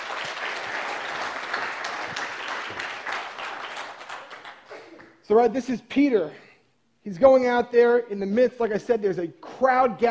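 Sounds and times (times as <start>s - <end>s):
round of applause: 0.0s - 4.9s
speech: 5.3s - 6.4s, 7.0s - 10.0s.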